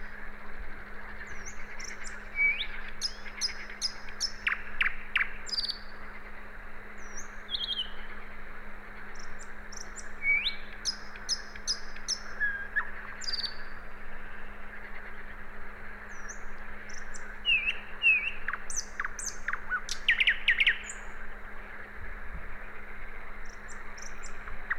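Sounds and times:
background hiss: 0.0 - 24.7
common nightingale singing: 1.2 - 5.9, 7.0 - 8.1, 9.1 - 13.8, 16.0 - 21.2, 23.4 - 24.7.

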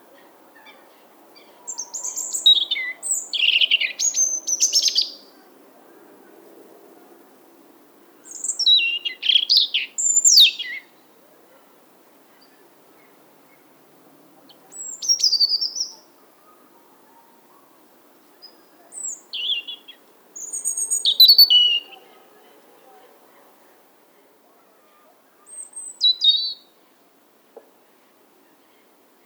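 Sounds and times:
European robin song: 0.0 - 6.1, 8.2 - 11.5, 12.3 - 23.8, 25.4 - 26.8.

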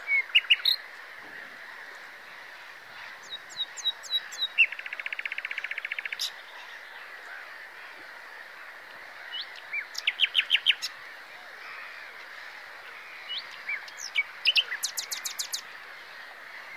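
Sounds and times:
common nightingale song: 0.0 - 1.0, 3.0 - 6.9, 9.3 - 11.0, 13.2 - 15.7.

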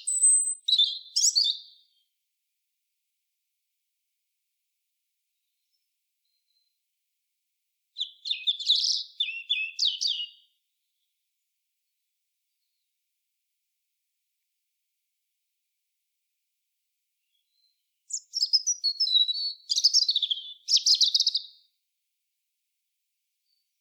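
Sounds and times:
European robin singing: 0.0 - 2.0, 8.0 - 10.6, 17.2 - 21.7.

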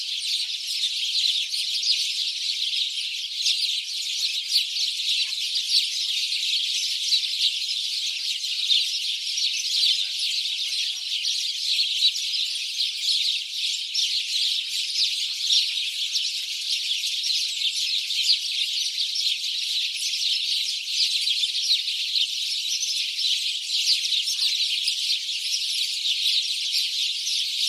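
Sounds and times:
house sparrow chorus: 0.0 - 27.6.

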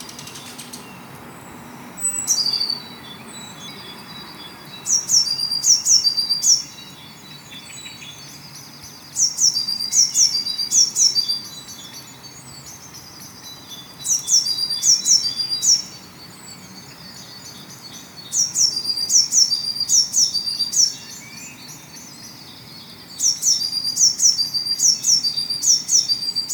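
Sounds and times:
Eurasian blue tit calling: 0.0 - 1.1, 1.9 - 22.3, 22.9 - 26.5.

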